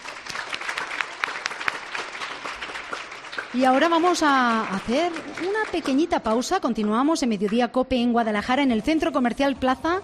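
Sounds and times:
audience applause: 0.0 - 6.4
speech: 3.5 - 10.0.

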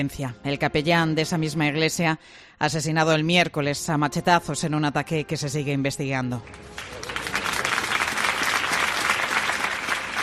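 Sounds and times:
speech: 0.0 - 7.1
crowd applauding outside a funeral: 6.5 - 10.2.

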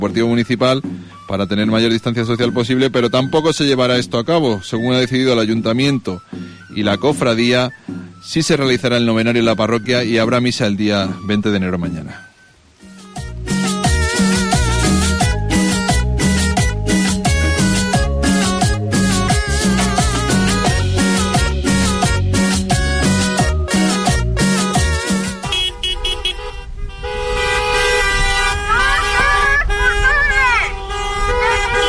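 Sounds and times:
speech: 0.0 - 12.3
protest car caravan in Cáceres: 12.9 - 31.8.

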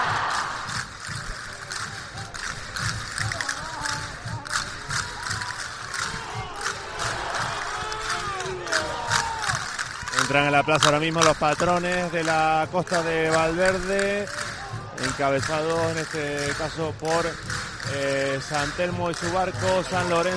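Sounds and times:
crowd shouting cheers and vivas inside a church during a religious festival: 0.0 - 0.8, 3.3 - 16.6
speech: 10.3 - 14.4, 15.0 - 20.3.

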